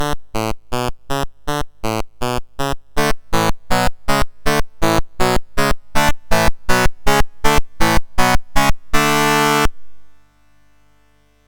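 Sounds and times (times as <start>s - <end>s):
chiptune music on MOS6581R4 sound chip: 0.0s - 9.7s.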